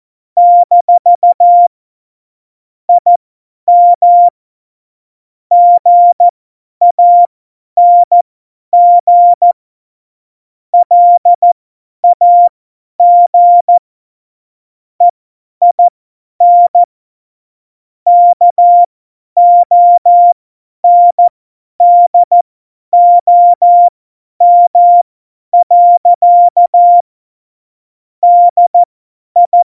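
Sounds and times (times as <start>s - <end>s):
CW morse code beeps: 0.4s - 1.7s, 3.0s - 4.3s, 5.5s - 6.3s, 6.9s - 8.2s, 8.8s - 9.6s, 10.8s - 13.8s, 15.7s - 16.9s, 18.1s - 22.4s, 23.0s - 25.0s, 25.6s - 27.0s, 28.2s - 29.7s.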